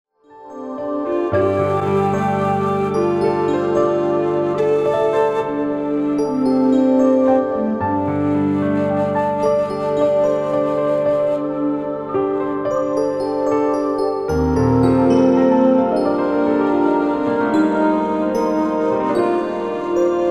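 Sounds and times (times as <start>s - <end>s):
music: 0.1s - 20.2s.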